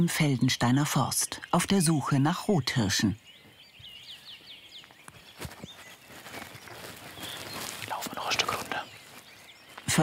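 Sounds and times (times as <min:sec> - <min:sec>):
speech: 0:00.0 - 0:03.3
birds chirping and tweeting in the Feldensteiner Forst: 0:00.0 - 0:10.0
footsteps crunching on gravel in the Feldensteiner Forst in the early morning: 0:03.4 - 0:10.0.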